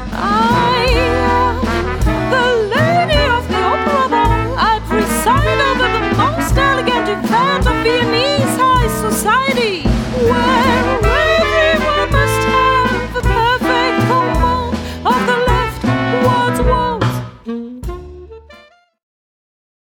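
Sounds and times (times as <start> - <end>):
waltz music: 0.2 - 18.7.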